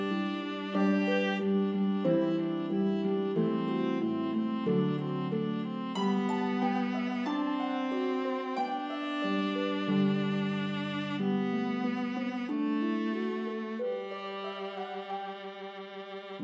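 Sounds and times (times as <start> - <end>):
harp melody: 0.0 - 16.4
viola: 0.0 - 16.4.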